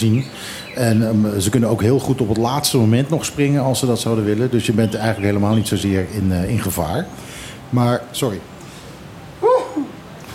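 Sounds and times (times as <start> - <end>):
speech: 0.0 - 8.5
sneeze: 9.4 - 9.9.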